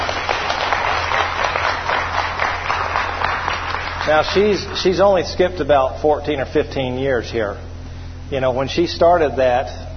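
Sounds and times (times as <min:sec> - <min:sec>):
audience hand clapping: 0:00.0 - 0:04.9
speech: 0:04.1 - 0:07.7, 0:08.3 - 0:09.8.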